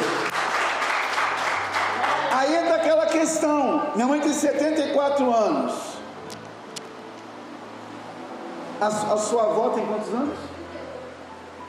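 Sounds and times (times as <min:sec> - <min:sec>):
audience applause: 0:00.0 - 0:02.7
speech: 0:03.2 - 0:05.9, 0:08.8 - 0:10.5.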